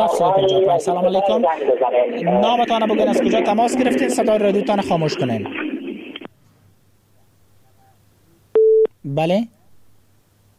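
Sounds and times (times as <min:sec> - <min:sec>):
speech: 0:00.0 - 0:05.7, 0:09.0 - 0:09.6
telephone beep after a dropped call: 0:08.6 - 0:08.9.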